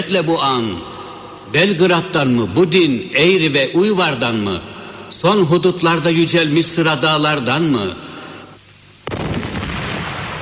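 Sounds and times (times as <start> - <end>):
speech: 0.1 - 0.9, 1.5 - 8.0
cannon fire: 9.0 - 10.4.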